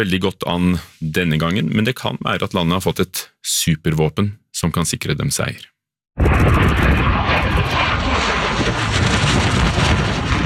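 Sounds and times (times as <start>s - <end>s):
speech: 0.0s - 7.9s
Russian MiG-29 fighter jet flying low over the ground in Wisconsin: 6.2s - 10.4s.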